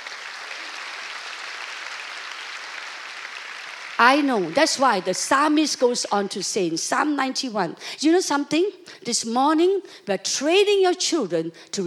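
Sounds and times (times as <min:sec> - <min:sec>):
audience applause: 0:00.0 - 0:05.6
speech: 0:04.0 - 0:11.8.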